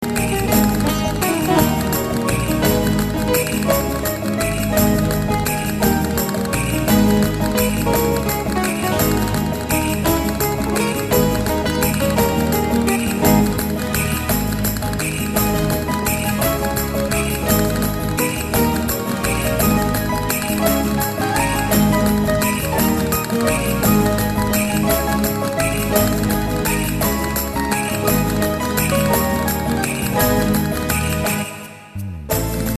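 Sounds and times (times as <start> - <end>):
sevillana flamenco music: 0.0 - 32.7.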